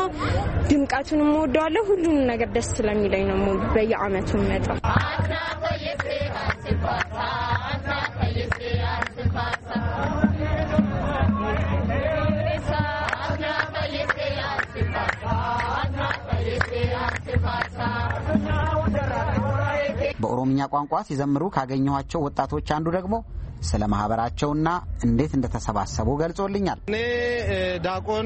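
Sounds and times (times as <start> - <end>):
crowd of voices at a religious festival celebration: 0.0 - 20.6
speech: 0.1 - 7.6, 20.2 - 28.2.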